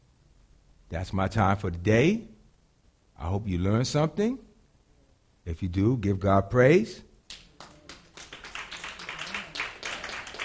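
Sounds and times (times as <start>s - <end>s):
speech: 0.9s - 2.3s, 3.2s - 4.5s, 5.4s - 7.4s
audience hand clapping: 7.3s - 10.4s.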